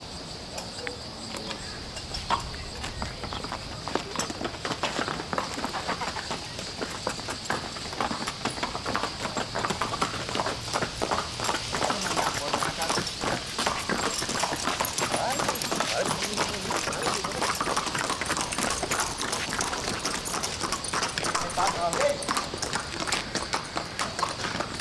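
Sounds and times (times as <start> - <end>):
horse trotting on hard ground: 0.0 - 24.8.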